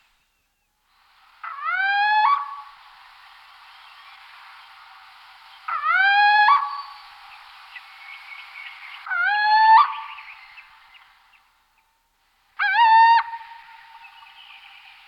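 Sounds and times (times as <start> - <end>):
Athene noctua little owl calling: 5.7 - 7.0, 9.0 - 10.6, 12.6 - 14.6.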